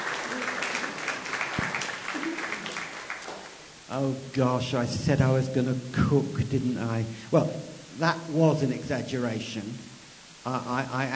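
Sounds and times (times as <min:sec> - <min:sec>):
round of applause: 0:00.0 - 0:03.7
speech: 0:03.9 - 0:11.1.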